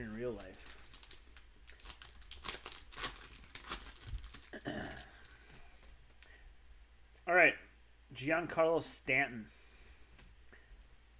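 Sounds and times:
speech: 0.0 - 0.8, 7.3 - 9.6
trading card pack wrappers crinkling and tearing: 0.0 - 6.0.

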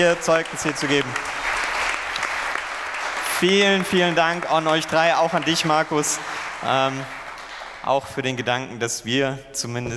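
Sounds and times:
speech: 0.0 - 1.4, 3.4 - 7.2, 7.8 - 9.9
loud applause: 0.0 - 8.4.

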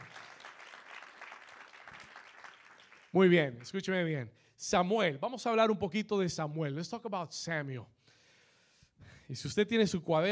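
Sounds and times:
applause: 0.0 - 3.9
speech: 3.1 - 8.0, 9.3 - 10.3.

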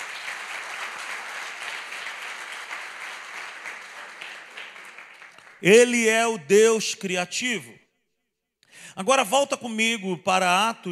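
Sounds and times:
audience applause: 0.0 - 5.9
speech: 5.6 - 7.8, 9.0 - 10.8.

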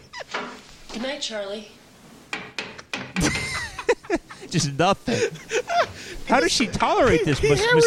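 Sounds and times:
speech: 1.0 - 1.8, 4.1 - 7.8
hammering on wood: 2.3 - 3.9
laughter: 3.2 - 7.8.

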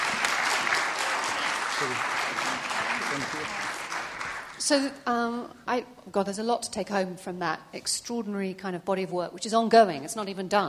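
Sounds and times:
audience applause: 0.0 - 4.6
speech: 1.8 - 2.1, 3.1 - 3.7, 4.6 - 10.6.

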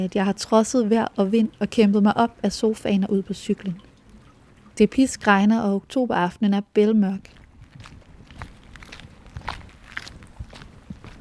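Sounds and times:
speech: 0.0 - 3.9, 4.8 - 7.4
footsteps walking on gravel road: 7.2 - 11.1.

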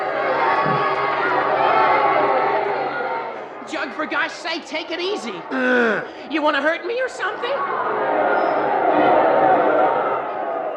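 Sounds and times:
boxing crowd cheering wildly: 0.0 - 4.4, 7.6 - 10.7
speech: 4.0 - 9.2.

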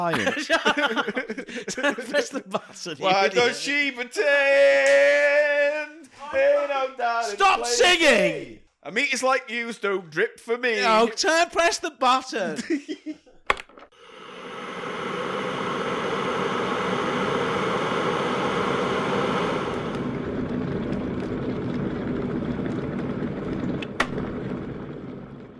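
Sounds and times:
laughter: 0.0 - 3.0, 12.5 - 13.4
speech: 0.0 - 13.2
electric kettle boiling: 13.9 - 25.5.

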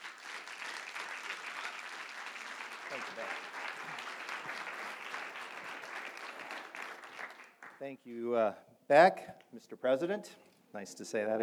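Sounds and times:
audience at Whitworth applauding to welcome a guest speaker: 0.0 - 7.9
speech: 2.9 - 3.7, 7.8 - 11.4.

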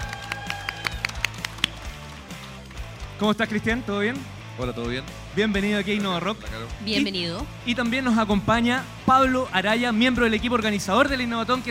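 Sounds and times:
live audience applause at the Innovatón: 0.0 - 2.9
speech: 3.2 - 11.6.

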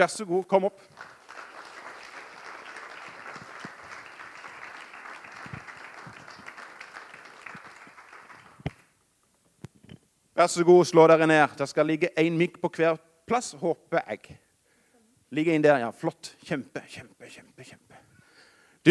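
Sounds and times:
speech: 0.0 - 1.2, 10.4 - 14.4, 15.3 - 17.8
audience applause: 0.9 - 8.9.

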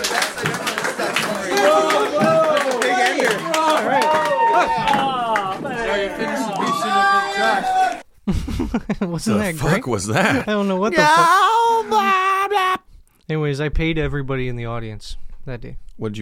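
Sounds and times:
crowd applauding: 0.0 - 8.0
laughter: 0.0 - 12.8
high whoops and shouts: 3.8 - 5.7, 6.4 - 8.0, 11.0 - 12.8
speech: 8.8 - 12.3, 13.3 - 16.2.

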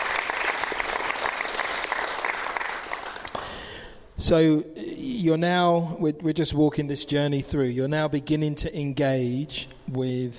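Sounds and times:
crowd clapping: 0.0 - 3.7
speech: 4.2 - 10.3.

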